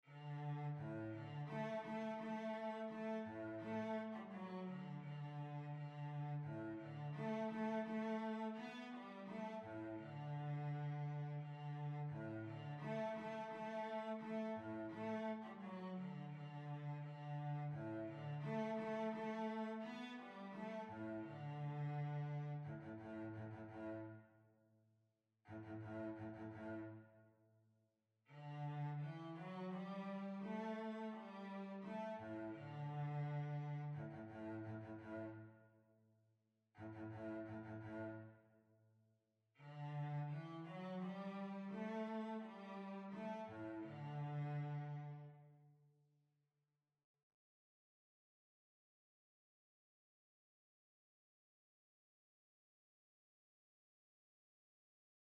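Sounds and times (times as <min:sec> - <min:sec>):
violoncello: 0:00.0 - 0:24.3, 0:25.5 - 0:27.2, 0:28.3 - 0:35.6, 0:36.8 - 0:38.5, 0:39.6 - 0:45.6.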